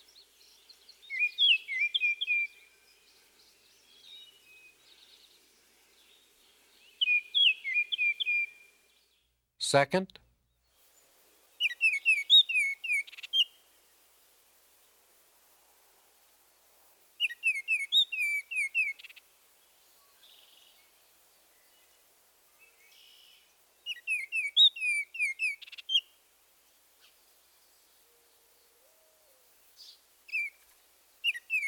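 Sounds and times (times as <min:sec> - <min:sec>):
Northern Oriole whistled song: 0:00.2 - 0:05.2, 0:06.8 - 0:08.8, 0:11.6 - 0:13.6, 0:17.2 - 0:19.2, 0:22.6 - 0:26.1, 0:29.2 - 0:30.6, 0:31.2 - 0:31.6
speech: 0:09.7 - 0:10.2.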